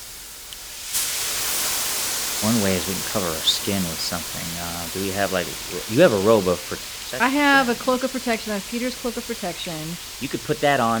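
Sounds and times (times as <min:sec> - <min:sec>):
steam blast: 0:00.0 - 0:10.9
speech: 0:02.4 - 0:10.9.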